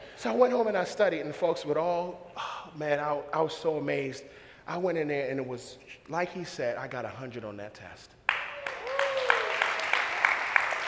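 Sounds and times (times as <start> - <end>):
speech: 0.2 - 8.2
audience clapping: 8.3 - 10.8.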